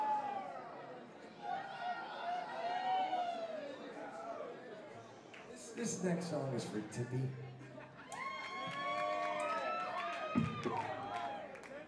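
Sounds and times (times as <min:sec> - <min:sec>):
audience cheering: 0:00.0 - 0:04.2, 0:08.0 - 0:11.8
speech: 0:05.8 - 0:07.7
laughter: 0:07.4 - 0:08.8.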